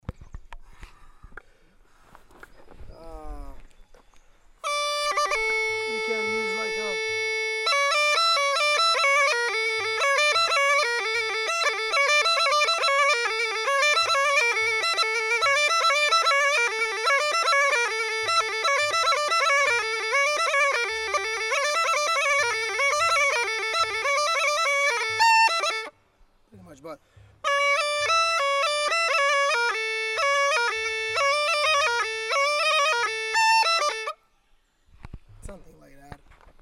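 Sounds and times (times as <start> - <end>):
bagpipe: 4.6 - 26.0, 27.2 - 34.2.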